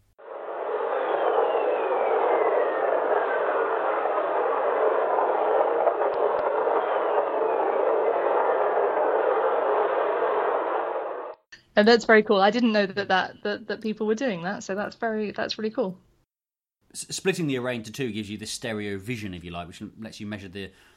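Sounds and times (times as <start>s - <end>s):
Jupiter lightning whistlers recorded by Voyager: 0.2s - 11.4s
speech: 11.8s - 16.0s, 16.9s - 20.9s.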